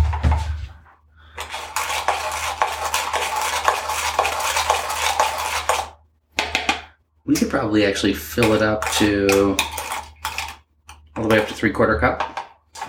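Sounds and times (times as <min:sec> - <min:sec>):
whisking ingredients together in a bowl: 0:01.3 - 0:06.8, 0:07.7 - 0:12.8
speech: 0:07.4 - 0:09.8, 0:11.3 - 0:12.3.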